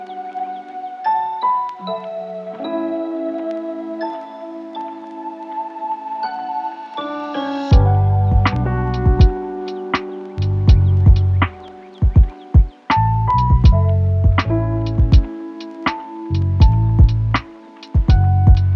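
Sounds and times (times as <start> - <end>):
lo-fi nature ambience: 0.0 - 18.7.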